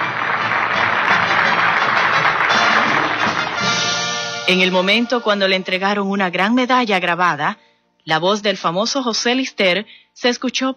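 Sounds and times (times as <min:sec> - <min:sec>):
auditorium audience applause: 0:00.0 - 0:04.2
speech: 0:04.5 - 0:10.7.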